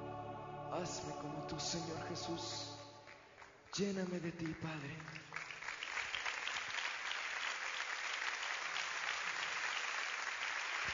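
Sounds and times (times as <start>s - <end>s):
speech: 0.7s - 2.8s, 3.8s - 5.3s
audience applause: 4.4s - 10.9s.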